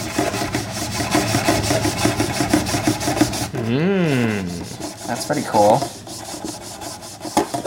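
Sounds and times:
damp cloth scrubbing paper: 0.0s - 7.6s
gliding vocal sound: 3.6s - 4.8s
speech: 3.7s - 4.5s, 5.1s - 6.0s.

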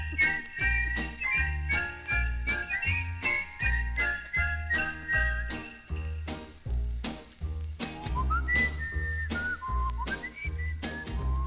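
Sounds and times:
jingling bell accents: 0.0s - 6.4s
whistled melody in a Christmas song recording: 0.0s - 6.5s, 7.8s - 11.4s.

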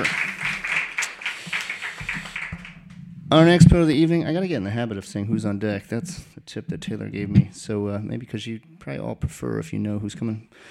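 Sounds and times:
speech: 0.0s - 0.3s, 3.3s - 10.6s
audience applause: 0.0s - 3.0s.

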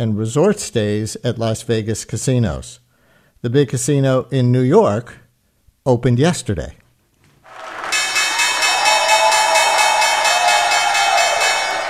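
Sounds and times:
speech: 0.0s - 2.8s, 3.4s - 5.2s, 5.8s - 6.8s
stock exchange reopening bell rung by Governor Cuomo: 7.5s - 11.8s.

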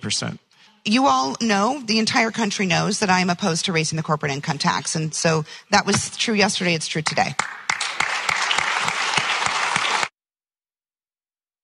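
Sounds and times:
speech: 0.0s - 7.6s
audience cheering: 7.6s - 10.1s.

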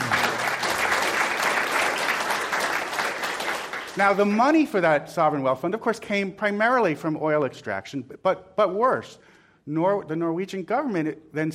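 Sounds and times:
crowd applause: 0.0s - 4.4s
speech: 4.0s - 11.5s.

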